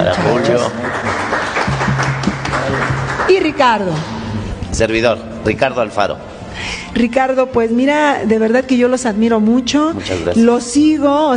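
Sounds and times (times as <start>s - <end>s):
audience clapping: 0.0s - 4.3s
speech: 0.1s - 0.9s, 3.4s - 4.2s, 4.8s - 11.3s.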